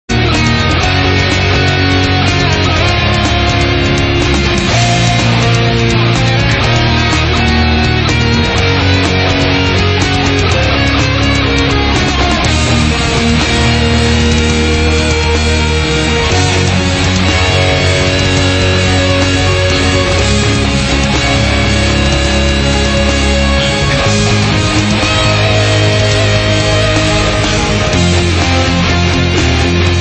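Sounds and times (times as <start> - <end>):
metal music: 0.0 - 29.9.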